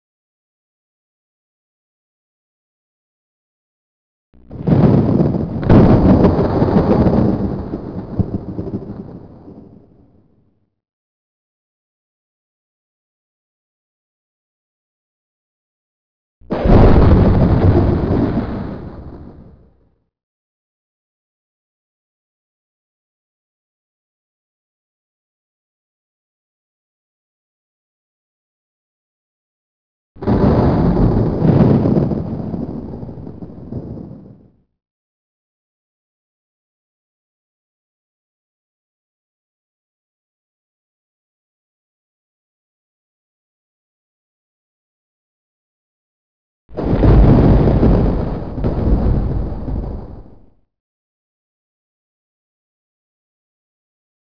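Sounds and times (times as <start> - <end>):
thunder: 4.4 - 10.5, 16.4 - 19.8, 30.2 - 34.6, 46.7 - 50.6.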